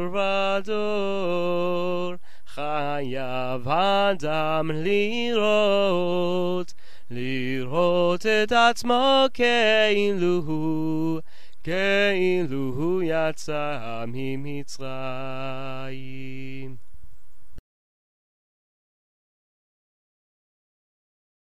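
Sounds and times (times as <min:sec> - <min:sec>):
Seder songs being sung: 0:00.0 - 0:16.8.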